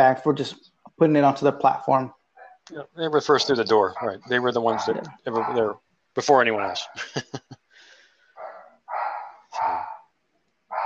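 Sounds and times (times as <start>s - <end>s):
speech: 0.0s - 7.5s
dog barking: 3.3s - 5.7s, 8.4s - 10.0s
laughter: 6.7s - 7.6s.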